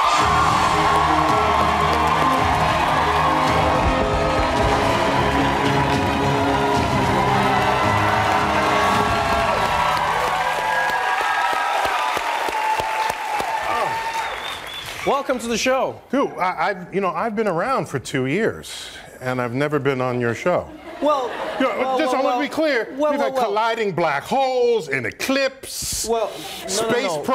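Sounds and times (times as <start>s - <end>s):
Comedy Central studio audience cheering, whooping and applauding a guest's entrance: 0.0s - 15.8s
speech: 15.2s - 27.3s.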